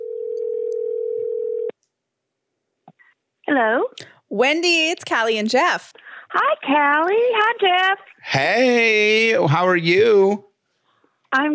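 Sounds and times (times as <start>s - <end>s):
telephone dial tone as a call is placed: 0.0s - 1.7s
speech: 3.5s - 10.5s, 11.3s - 11.5s.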